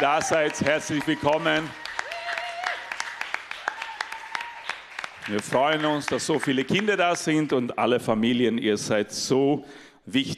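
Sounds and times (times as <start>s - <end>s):
speech: 0.0s - 1.9s, 5.3s - 10.3s
audience applauding first-time guests: 0.0s - 7.7s.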